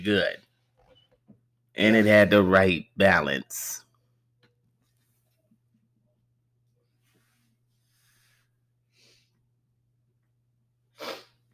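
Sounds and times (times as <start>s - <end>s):
speech: 0.0s - 0.4s, 1.8s - 3.8s
person sniffing: 11.0s - 11.5s.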